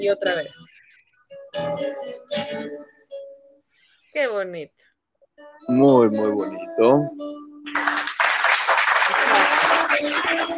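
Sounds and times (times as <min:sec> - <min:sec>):
speech: 0:00.0 - 0:00.6, 0:01.5 - 0:03.0, 0:04.2 - 0:04.9, 0:05.6 - 0:07.8, 0:09.3 - 0:10.5
standing ovation applause: 0:07.7 - 0:10.5.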